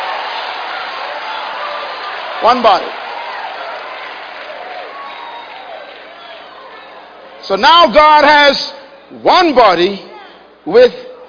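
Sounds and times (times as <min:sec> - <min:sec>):
audience clapping hands: 0:00.0 - 0:07.2
speech: 0:02.4 - 0:03.0, 0:07.5 - 0:11.0.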